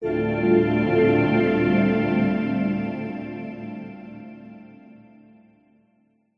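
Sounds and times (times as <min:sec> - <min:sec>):
multimedia logo musical warm swell: 0:00.0 - 0:05.0.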